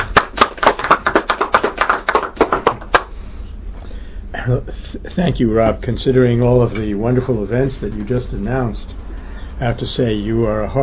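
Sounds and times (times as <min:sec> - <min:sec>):
sparse clapping from an evening audience welcoming a speaker: 0:00.0 - 0:03.2
speech: 0:04.5 - 0:09.0, 0:09.6 - 0:10.8.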